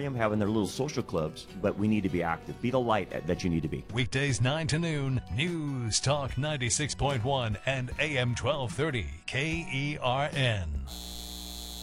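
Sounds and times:
speech: 0:00.0 - 0:11.2
steady electrical hum of a data center: 0:10.9 - 0:11.8.

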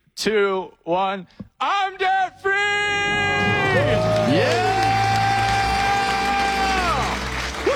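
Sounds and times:
speech: 0:00.2 - 0:04.8
crowd cheering and whooping: 0:02.9 - 0:07.7
applause: 0:03.4 - 0:07.7.

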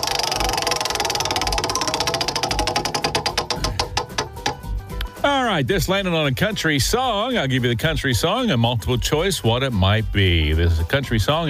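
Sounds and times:
prize wheel spun for a country music trivia game ticking: 0:00.0 - 0:05.1
speech: 0:05.6 - 0:11.4.

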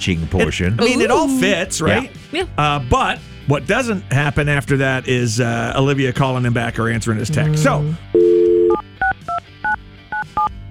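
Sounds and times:
speech: 0:00.0 - 0:08.2
touch-tone beeps as a phone number is keyed in: 0:08.2 - 0:10.5.

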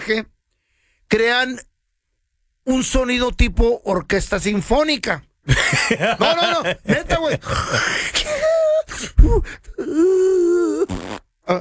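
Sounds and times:
speech: 0:00.1 - 0:00.4, 0:01.1 - 0:01.7, 0:02.6 - 0:08.4, 0:09.0 - 0:11.5
laughter: 0:05.5 - 0:08.9
person imitating snoring with their voice: 0:07.4 - 0:08.0, 0:09.8 - 0:11.2.

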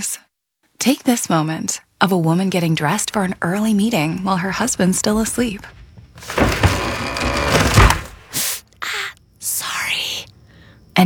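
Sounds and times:
speech: 0:00.8 - 0:06.4
wooden drawers slamming shut: 0:06.2 - 0:08.5.

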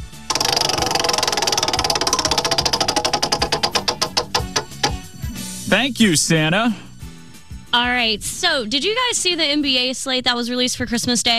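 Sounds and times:
prize wheel spun by hand ticking: 0:00.3 - 0:05.6
speech: 0:05.7 - 0:06.9, 0:07.7 - 0:11.3.

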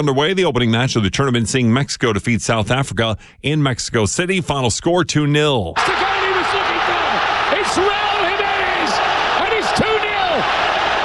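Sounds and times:
speech: 0:00.0 - 0:06.6
stadium crowd roaring at a football match: 0:05.8 - 0:11.0.

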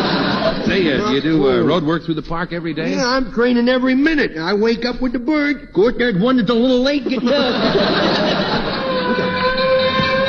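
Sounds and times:
laughter: 0:00.0 - 0:01.9, 0:06.8 - 0:10.2
speech: 0:00.7 - 0:09.2
fire truck going by: 0:08.0 - 0:10.2.

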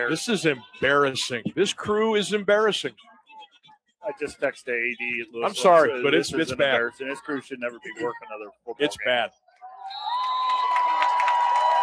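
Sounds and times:
speech: 0:00.0 - 0:03.1, 0:04.1 - 0:10.0
football stadium crowd at a Louisville game giving a Bronx cheer at the referee: 0:09.6 - 0:11.8
thin whistling tone: 0:09.8 - 0:10.8.

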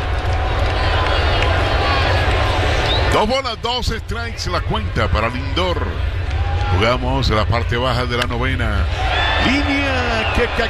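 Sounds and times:
baseball stadium crowd applauding: 0:00.0 - 0:03.0, 0:09.0 - 0:10.6
speech: 0:03.2 - 0:06.1, 0:06.7 - 0:10.6.

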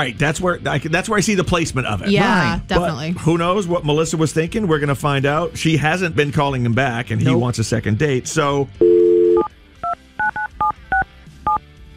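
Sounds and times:
speech: 0:00.0 - 0:09.0
telephone dial tone: 0:08.8 - 0:11.6
telephone keypad beeps dialing a number: 0:08.8 - 0:11.6.

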